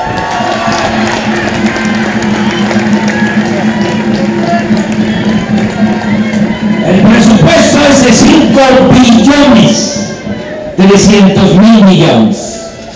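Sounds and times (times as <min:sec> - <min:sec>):
audience applause: 0:00.0 - 0:07.7
audience cheering: 0:00.0 - 0:11.5
speech: 0:10.8 - 0:12.5.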